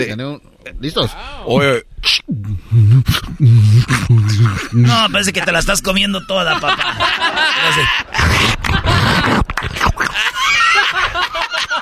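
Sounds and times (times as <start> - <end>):
speech: 0.0 - 8.8
beatboxing: 2.0 - 5.3, 8.1 - 10.4
laughter: 3.4 - 11.7.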